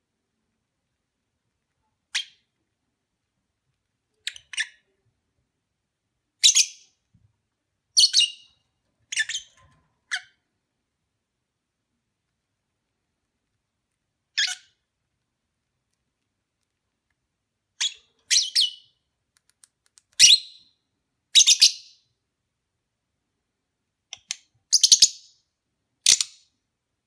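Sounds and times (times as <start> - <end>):
lovebird chirps during courtship: 2.1 - 2.5, 4.2 - 4.9, 6.4 - 7.0, 7.9 - 10.4, 14.3 - 14.8, 17.8 - 19.0, 20.2 - 22.0, 24.7 - 25.4.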